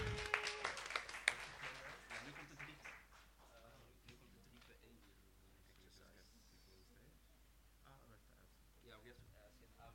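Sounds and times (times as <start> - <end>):
crowd applauding: 0.0 - 3.5.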